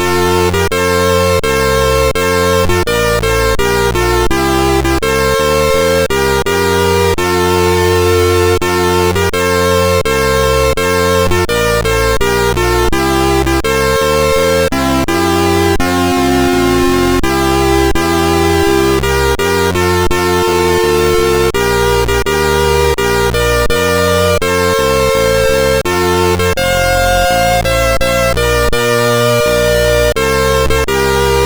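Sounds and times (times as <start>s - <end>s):
anthem played on MOS6581R2 sound chip: 0.0s - 31.4s.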